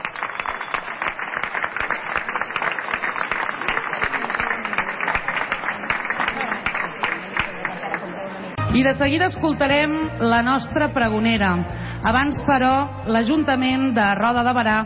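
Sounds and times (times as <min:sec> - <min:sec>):
crowd applause: 0:00.0 - 0:08.6
speech: 0:08.8 - 0:14.8.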